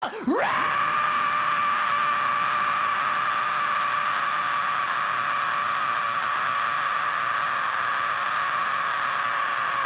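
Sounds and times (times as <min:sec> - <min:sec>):
monster scream: 0:00.0 - 0:09.8.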